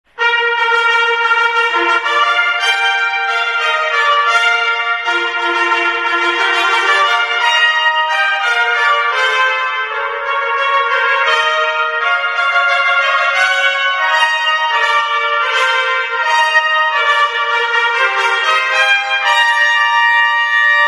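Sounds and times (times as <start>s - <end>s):
fanfare: 0.2s - 20.8s.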